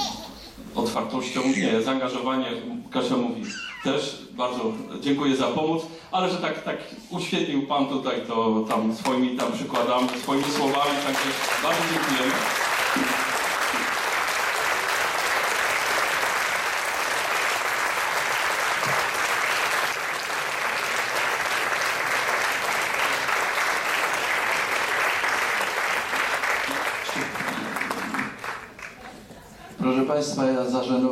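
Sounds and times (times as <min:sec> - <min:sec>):
speech: 0:00.8 - 0:13.1, 0:30.2 - 0:31.1
audience applause: 0:09.7 - 0:29.6.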